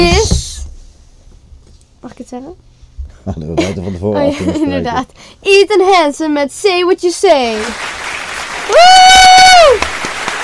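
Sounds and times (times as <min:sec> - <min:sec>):
speech: 0:02.3 - 0:07.9, 0:08.7 - 0:09.9
laughter: 0:03.2 - 0:05.0
applause: 0:07.5 - 0:10.4.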